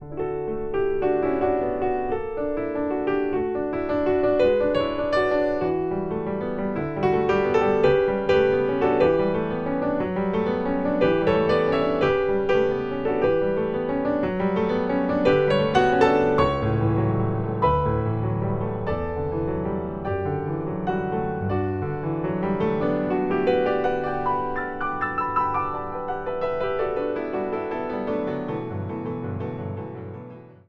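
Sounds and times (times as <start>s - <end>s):
piano: 0.0s - 30.6s.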